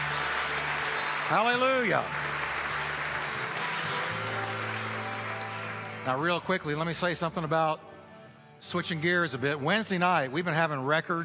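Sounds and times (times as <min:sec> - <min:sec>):
audience applause: 0:00.0 - 0:07.0
speech: 0:01.3 - 0:02.3, 0:06.0 - 0:07.9, 0:08.6 - 0:11.2.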